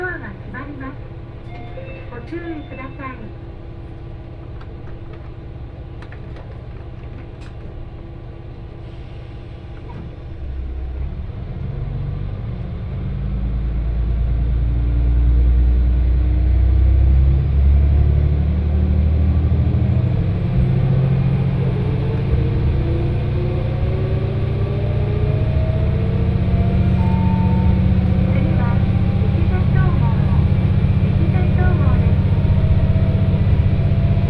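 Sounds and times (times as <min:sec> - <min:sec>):
local train wheels rumbling on track: 0:00.0 - 0:34.2
speech: 0:02.3 - 0:03.5.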